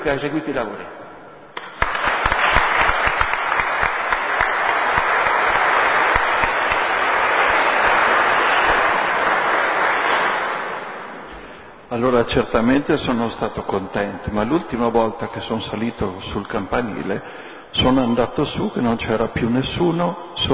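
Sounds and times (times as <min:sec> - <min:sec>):
speech: 0:00.0 - 0:01.0, 0:11.9 - 0:20.5
audience applause: 0:01.6 - 0:11.7.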